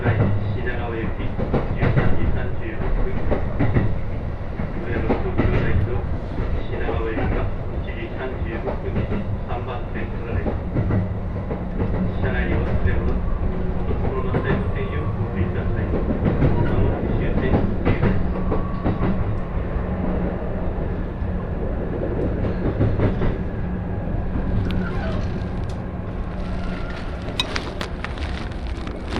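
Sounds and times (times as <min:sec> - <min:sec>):
Joban Line local train running toward Toride, heard on board: 0:00.0 - 0:29.1
sharp bright clicks and squeaks: 0:24.6 - 0:29.1.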